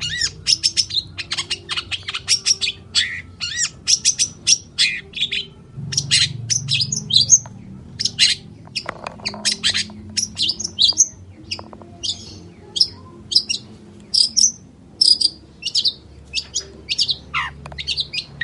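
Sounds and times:
long-tailed shrike singing harsh chatter and whistles: 0.0 - 18.4
low steady background hum: 0.0 - 18.4.

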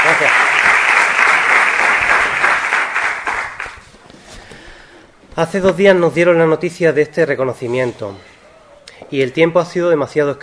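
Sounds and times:
audience applause at a recognition ceremony: 0.0 - 3.8
speech: 5.4 - 8.3, 9.1 - 10.4.

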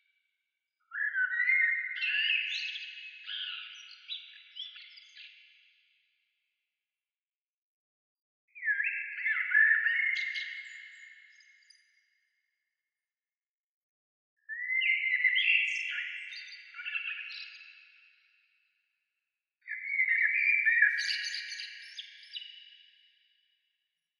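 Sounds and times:
bird song: 0.0 - 6.2, 8.5 - 12.7, 14.4 - 19.0, 19.6 - 23.8.

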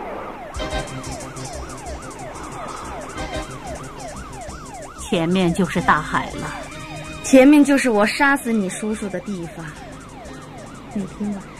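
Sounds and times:
engine and road noise: 0.0 - 11.5
police car siren wailing: 0.0 - 11.5
speech: 0.9 - 1.3, 5.1 - 6.6, 7.3 - 9.8, 11.0 - 11.5.

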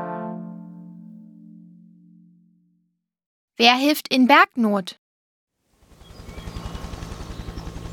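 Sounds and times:
speech: 3.6 - 5.0
helicopter: 5.7 - 7.9.

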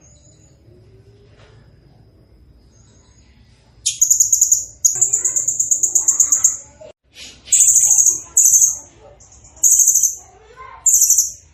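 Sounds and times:
bird singing: 0.0 - 6.8, 7.5 - 10.2, 10.8 - 11.4.

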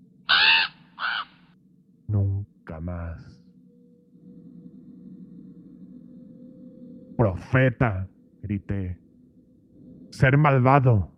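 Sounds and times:
low hum: 0.0 - 11.1
raven cawing: 0.2 - 1.6
speech: 7.2 - 9.0, 10.2 - 11.1.

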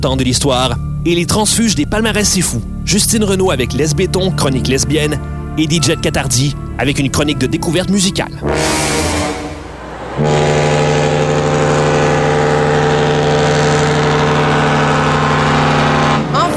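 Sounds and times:
speech: 0.0 - 9.1, 10.2 - 10.4
boat engine rumbling: 0.0 - 16.5
loud deep boat horn blast: 8.4 - 16.5.

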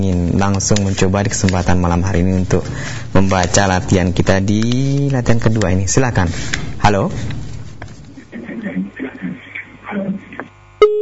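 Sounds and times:
speech: 0.0 - 7.4
thin voice over a phone line during a live call-in: 8.3 - 10.4
steady electronic tone after phone line cut off: 10.7 - 11.0.

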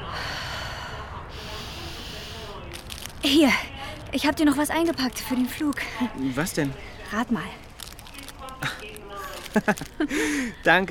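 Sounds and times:
deep breathing into the belly: 0.0 - 2.6, 10.0 - 10.7
speech: 3.2 - 7.6, 8.6 - 10.8.

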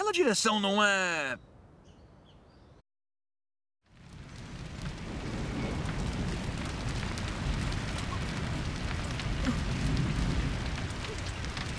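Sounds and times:
speech: 0.1 - 1.5
fire burning: 3.8 - 11.7.

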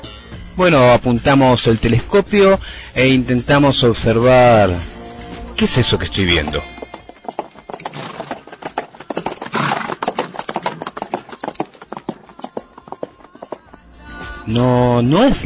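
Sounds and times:
speech: 0.6 - 4.9, 5.6 - 6.7, 14.5 - 15.4
horse hooves clip-clopping: 5.6 - 13.9.

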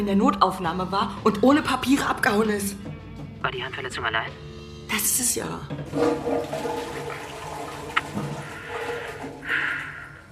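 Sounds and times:
speech: 0.0 - 7.3
toilet flushing: 5.7 - 10.3.

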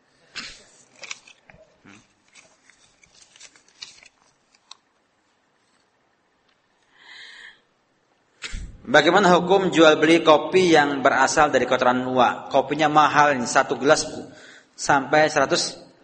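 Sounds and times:
paper sheets rustling and crinkling: 0.3 - 5.9
speech: 8.9 - 15.8.

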